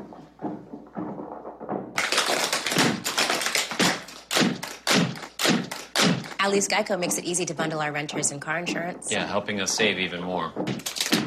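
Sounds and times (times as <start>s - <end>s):
clogging or Irish step dancing taps: 0.0s - 11.2s
speech: 6.4s - 11.0s.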